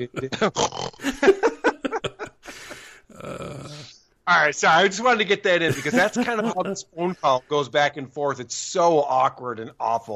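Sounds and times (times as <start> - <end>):
speech: 0.0 - 1.4, 4.3 - 10.1
laughter: 0.0 - 3.0, 5.6 - 7.6
person fake snoring: 2.5 - 4.0.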